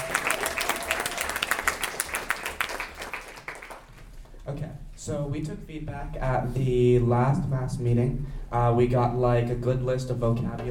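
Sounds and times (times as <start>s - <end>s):
audience applause: 0.0s - 4.0s
speech: 4.5s - 10.6s.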